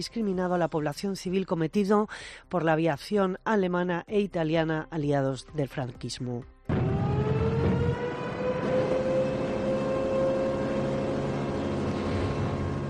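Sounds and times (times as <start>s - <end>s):
speech: 0.0s - 6.8s
air raid siren wailing: 6.7s - 12.8s.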